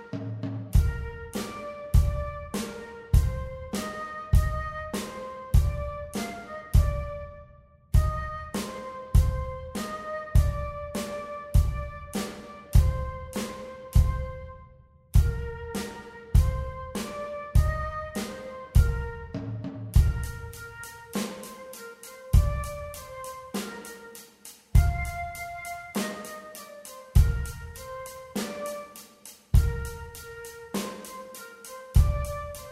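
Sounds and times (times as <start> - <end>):
rock flute music: 0.0 - 32.6.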